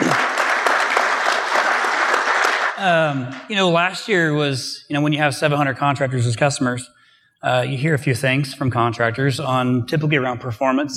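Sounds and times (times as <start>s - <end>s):
round of applause from a group: 0.0s - 3.4s
speech: 2.8s - 10.9s.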